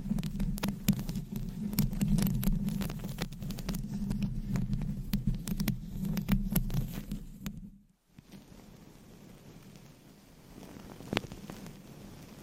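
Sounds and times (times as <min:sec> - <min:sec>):
crisp tap: 0:00.0 - 0:08.4
long nails scratching and tapping on a microphone: 0:00.0 - 0:08.7, 0:10.5 - 0:12.3.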